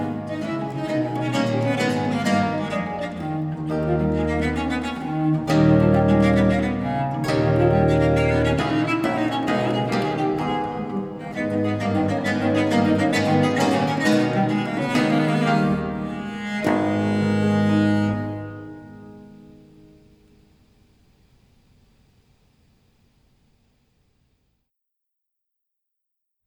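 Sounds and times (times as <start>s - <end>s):
sonata gigue: 0.0s - 20.2s.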